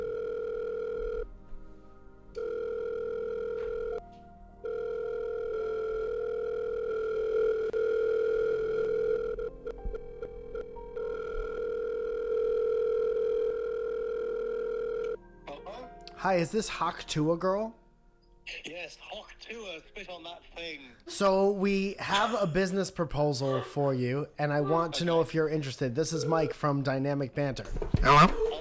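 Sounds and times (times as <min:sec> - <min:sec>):
telephone dial tone while placing a call: 0:00.0 - 0:01.3, 0:02.4 - 0:15.2
speech: 0:16.2 - 0:17.8, 0:18.5 - 0:28.4.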